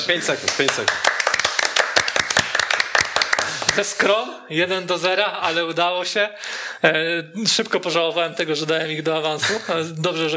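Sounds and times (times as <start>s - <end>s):
speech: 0.1s - 1.4s, 3.8s - 10.3s
hand clapping: 0.4s - 4.0s.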